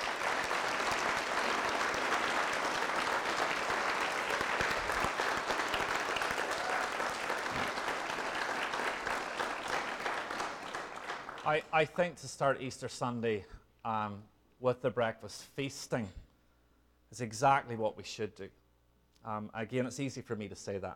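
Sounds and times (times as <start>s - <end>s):
audience applause: 0.0s - 11.6s
speech: 11.5s - 16.2s, 17.1s - 18.6s, 19.2s - 20.9s.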